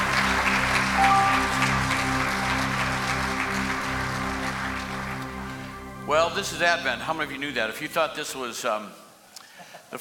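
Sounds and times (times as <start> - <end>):
church congregation applauding: 0.0 - 7.9
speech: 6.1 - 9.0.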